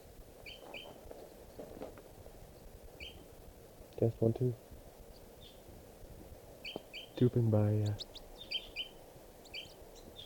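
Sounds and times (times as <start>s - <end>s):
rustling hiss: 0.0s - 10.2s
flock of crossbills flying over, calling: 0.4s - 1.0s, 2.6s - 3.3s, 6.6s - 10.2s
speech: 4.0s - 4.6s, 7.2s - 8.1s.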